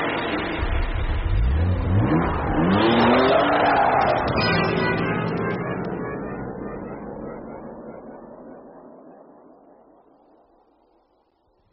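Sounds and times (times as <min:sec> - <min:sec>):
car engine starting and revving: 0:00.1 - 0:07.9.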